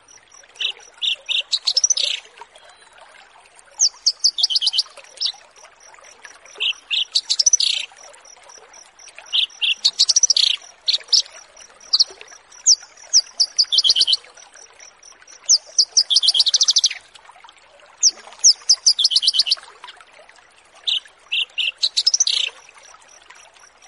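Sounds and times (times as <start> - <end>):
bush lark song: 0.6 - 2.9, 3.8 - 5.5, 6.6 - 7.9, 9.2 - 14.2, 15.2 - 17.0, 18.4 - 19.6, 20.8 - 22.6.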